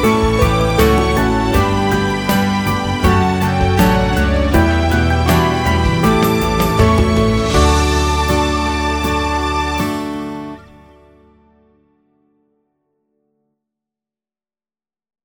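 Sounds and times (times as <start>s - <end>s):
musical accompaniment: 0.0s - 11.5s.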